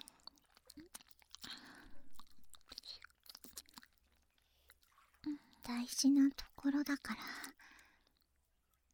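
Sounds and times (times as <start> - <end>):
wet tongue licking and rolling mouth sounds for ASMR: 0.0 - 5.6
speech: 5.7 - 7.5.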